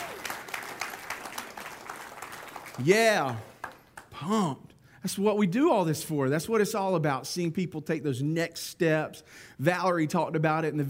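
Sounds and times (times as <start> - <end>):
audience applause: 0.0 - 4.0
speech: 2.8 - 3.5, 4.2 - 10.8.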